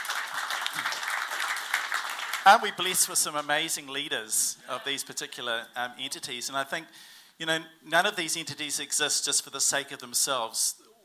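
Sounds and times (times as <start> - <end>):
round of applause: 0.0 - 3.0
speech: 2.4 - 10.8.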